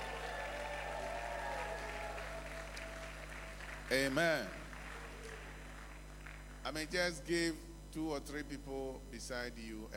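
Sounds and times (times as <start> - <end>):
church congregation clapping: 0.0 - 6.7
speech: 3.9 - 4.6, 6.6 - 9.9.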